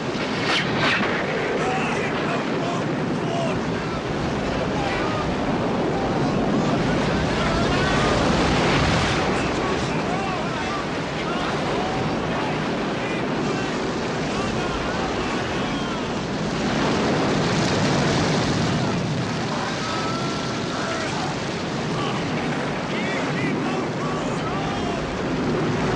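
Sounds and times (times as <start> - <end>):
sea waves around a moving boat: 0.0 - 25.9
wind around a moving boat: 0.0 - 25.9.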